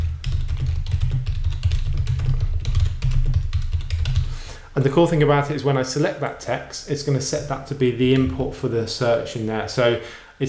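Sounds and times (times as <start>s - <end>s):
typing on a computer keyboard: 0.0s - 4.4s
speech: 4.8s - 10.4s.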